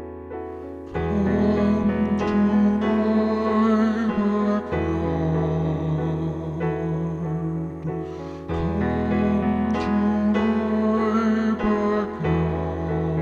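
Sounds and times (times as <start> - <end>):
baritone bass voice: 0.9 - 7.9, 8.5 - 13.1.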